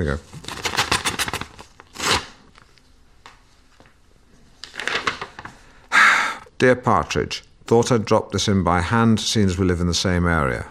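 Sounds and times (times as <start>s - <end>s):
speech: 0.0s - 0.4s, 6.6s - 10.6s
envelope being torn open: 0.3s - 2.6s, 4.6s - 5.5s.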